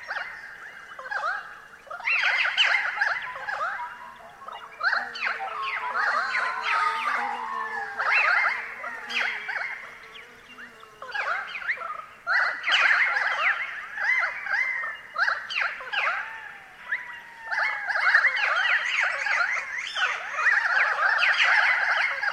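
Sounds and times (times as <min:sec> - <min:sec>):
Pied currawongs calling in eucalypt forest: 0:00.0 - 0:22.3
bees buzzing in eucalypt forest: 0:03.1 - 0:12.4.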